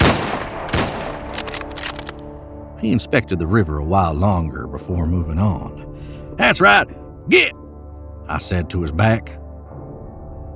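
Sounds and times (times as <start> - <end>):
Colt Dragoon revolver shots fired at a man's feet: 0.0 - 1.4
speech: 2.8 - 7.6, 8.3 - 9.4.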